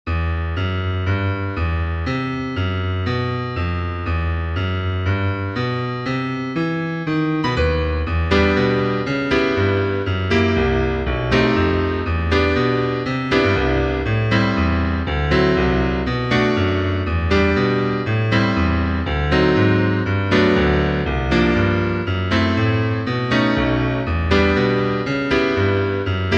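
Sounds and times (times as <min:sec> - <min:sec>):
piano: 0:00.0 - 0:26.3.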